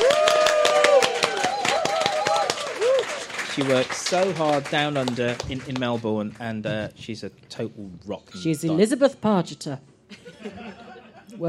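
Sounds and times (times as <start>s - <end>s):
applause: 0.0s - 6.6s
speech: 3.6s - 11.4s
laughter: 10.1s - 11.4s.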